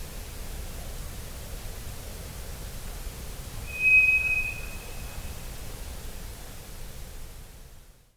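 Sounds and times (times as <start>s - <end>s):
ground thrush whistling: 3.7s - 5.2s.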